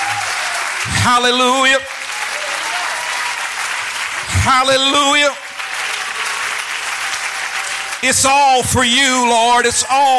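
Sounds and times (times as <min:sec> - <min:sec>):
audience clapping hands: 0:00.0 - 0:10.1
speech: 0:01.0 - 0:02.0, 0:04.3 - 0:05.4, 0:08.0 - 0:10.1.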